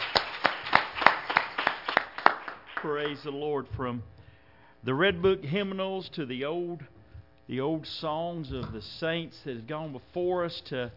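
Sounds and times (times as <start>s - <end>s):
church congregation clapping hands in praise: 0.0s - 3.4s
speech: 2.8s - 4.2s, 4.8s - 10.9s.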